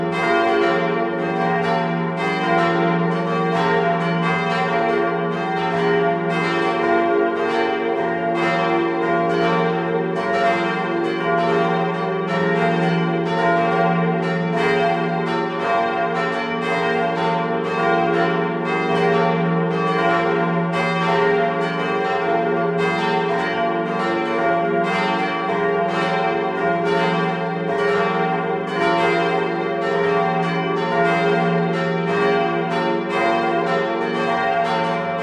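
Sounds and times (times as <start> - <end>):
church bells ringing: 0.0 - 35.2.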